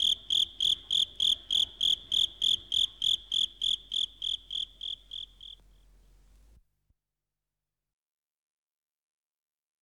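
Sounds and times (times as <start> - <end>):
insect: 0.0 - 6.5.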